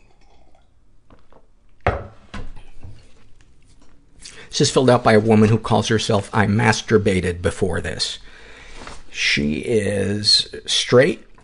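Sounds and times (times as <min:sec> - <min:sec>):
person sipping tea from a cup: 0:00.0 - 0:01.5, 0:03.0 - 0:04.5
speech: 0:04.6 - 0:08.3, 0:09.2 - 0:11.3.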